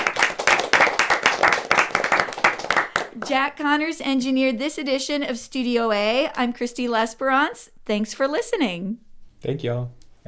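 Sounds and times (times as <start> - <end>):
small studio audience clapping: 0.0 - 3.6
speech: 3.2 - 10.2.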